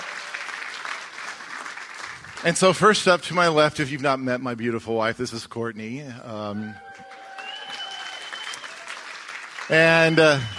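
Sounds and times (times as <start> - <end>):
crowd applauding: 0.0 - 3.8, 6.6 - 10.5
speech: 2.4 - 7.0, 9.7 - 10.5.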